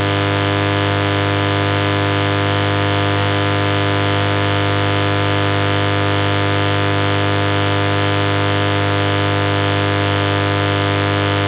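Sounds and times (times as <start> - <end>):
medium wave radio signal on 801 kHz: 0.0 - 6.6, 7.7 - 11.4.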